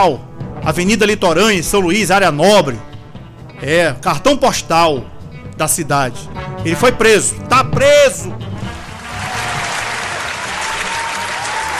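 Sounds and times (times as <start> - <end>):
speech: 0.0 - 2.9, 3.6 - 8.5
applause: 8.6 - 11.7.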